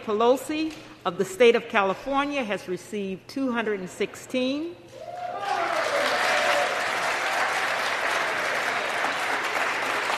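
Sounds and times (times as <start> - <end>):
speech: 0.0 - 5.1
large crowd applauding in a legislative chamber: 5.1 - 10.1.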